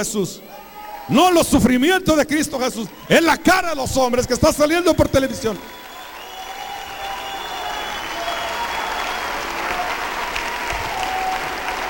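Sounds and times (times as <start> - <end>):
speech: 0.0 - 5.8
audience applauding: 4.8 - 11.8.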